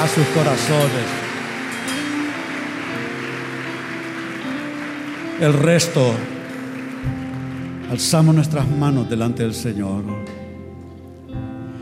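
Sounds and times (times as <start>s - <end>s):
speech: 0.0s - 1.3s, 5.4s - 6.4s, 7.0s - 7.2s, 7.9s - 10.4s
audience applause: 0.0s - 9.2s.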